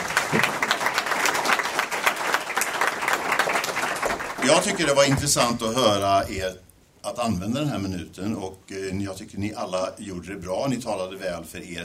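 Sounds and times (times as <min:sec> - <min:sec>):
audience applause: 0:00.0 - 0:05.6
speech: 0:00.3 - 0:00.5, 0:04.5 - 0:11.8.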